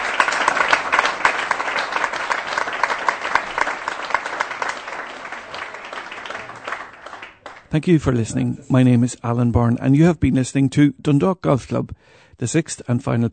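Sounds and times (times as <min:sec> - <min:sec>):
audience applause: 0:00.0 - 0:08.0
speech: 0:07.8 - 0:13.3.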